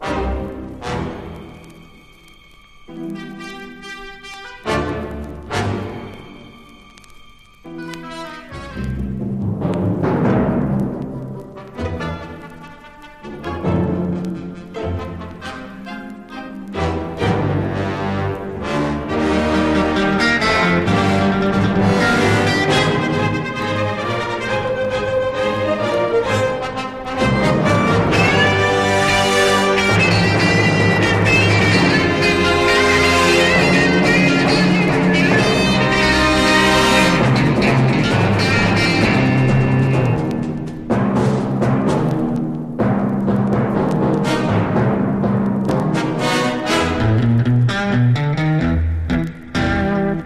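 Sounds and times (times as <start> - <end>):
guitar: 0.0 - 50.2.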